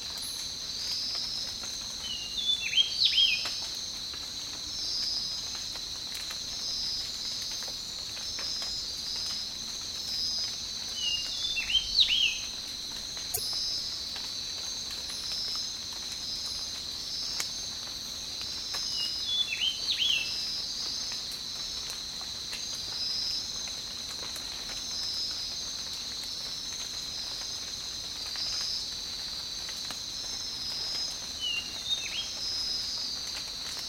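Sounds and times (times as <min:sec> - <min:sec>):
tropical rain: 0:00.0 - 0:33.8.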